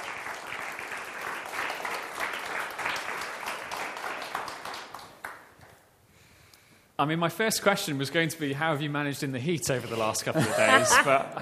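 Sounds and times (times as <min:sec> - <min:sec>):
audience applause: 0:00.0 - 0:05.5
speech: 0:07.0 - 0:11.4
laughter: 0:09.8 - 0:11.4.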